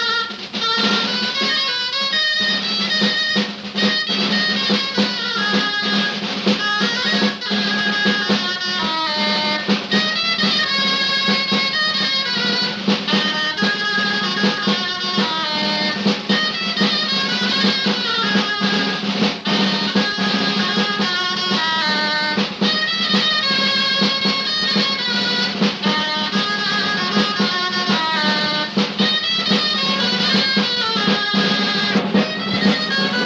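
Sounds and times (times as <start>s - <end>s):
traditional Spanish dance music from Valladolid: 0.0s - 33.2s.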